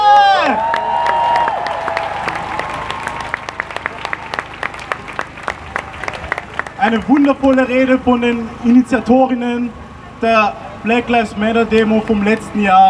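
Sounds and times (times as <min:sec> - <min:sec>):
crowd cheering and whooping: 0:00.0 - 0:07.0
crowd applauding: 0:00.0 - 0:08.6
speech: 0:06.8 - 0:12.8.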